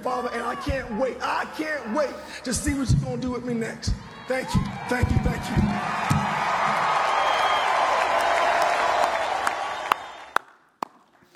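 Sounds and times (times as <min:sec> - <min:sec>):
speech: 0:00.0 - 0:06.5
crowd clapping: 0:04.4 - 0:11.3.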